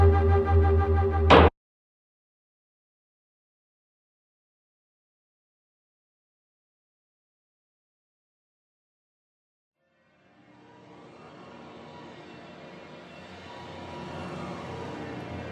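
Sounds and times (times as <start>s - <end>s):
dark ambient music: 0.0s - 1.5s, 10.0s - 15.5s.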